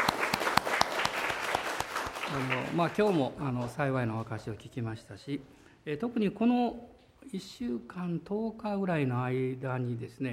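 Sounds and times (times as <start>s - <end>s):
audience applause: 0.0s - 3.4s
speech: 2.3s - 10.3s.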